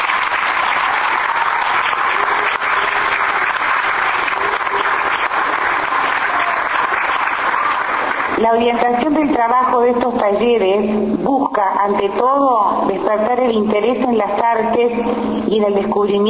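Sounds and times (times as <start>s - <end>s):
audience applause: 0.0s - 8.4s
speech: 8.4s - 16.2s.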